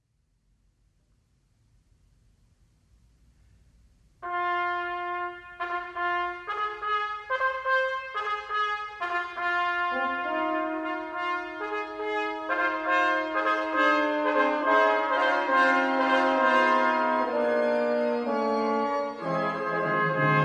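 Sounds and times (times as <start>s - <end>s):
fanfare: 4.2s - 20.4s.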